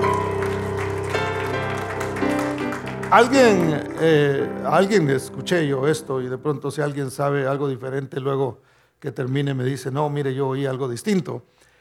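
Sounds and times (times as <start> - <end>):
audience applause: 0.0 - 5.0
speech: 3.1 - 11.7.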